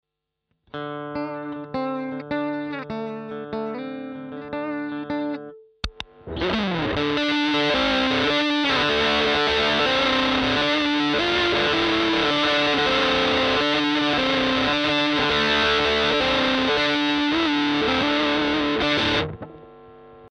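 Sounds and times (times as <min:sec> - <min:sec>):
riffs at maximum gain on BM20 Ultra: 0:00.8 - 0:20.3.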